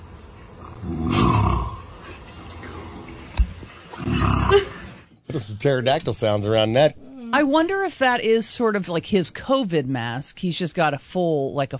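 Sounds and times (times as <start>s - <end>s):
T. rex roar: 0.6s - 1.9s, 4.0s - 4.8s
speech: 5.4s - 11.7s.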